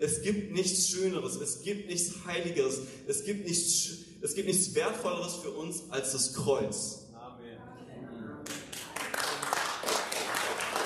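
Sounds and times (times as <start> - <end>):
speech: 0.0 - 7.0
faint murmuring: 7.2 - 9.1
audience applause: 8.5 - 10.8.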